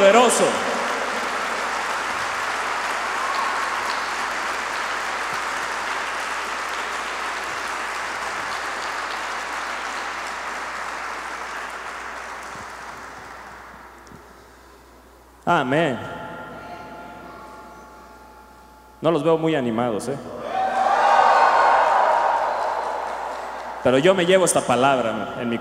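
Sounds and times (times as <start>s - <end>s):
audience applause: 0.0s - 14.1s, 20.5s - 24.6s
speech: 0.2s - 0.7s, 15.5s - 16.1s, 19.0s - 20.5s, 23.8s - 25.5s.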